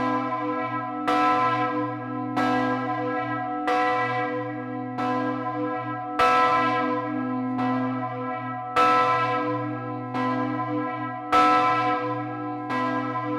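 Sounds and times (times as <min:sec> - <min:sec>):
church bell ringing in Ettiswil: 0:00.0 - 0:13.3.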